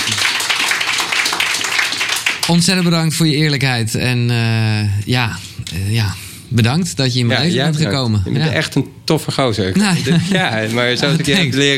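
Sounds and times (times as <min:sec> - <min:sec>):
applause, clapping: 0:00.0 - 0:03.0
speech: 0:02.5 - 0:11.7
laughter: 0:09.7 - 0:11.7.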